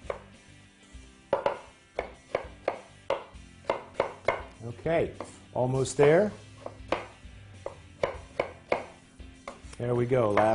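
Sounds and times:
knife rough-dicing food: 1.3s - 4.5s, 6.0s - 10.5s
speech: 4.7s - 6.4s, 9.8s - 10.5s.

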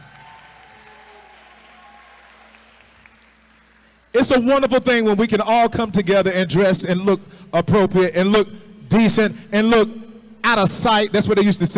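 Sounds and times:
audience clapping: 0.0s - 4.2s
speech: 4.2s - 11.7s.

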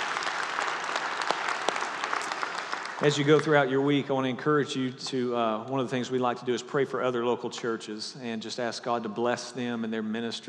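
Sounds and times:
audience applause in a church: 0.0s - 3.7s
speech: 3.0s - 10.4s.

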